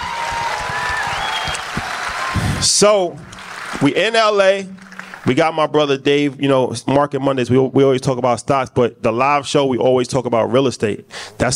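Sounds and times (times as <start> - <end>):
audience applause: 0.0 - 5.4
speech: 2.6 - 11.5.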